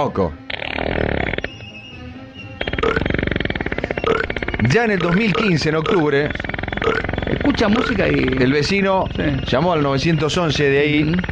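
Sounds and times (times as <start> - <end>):
speech: 0.0 - 1.1, 4.7 - 11.3
loud burping: 0.5 - 1.6, 2.6 - 9.5.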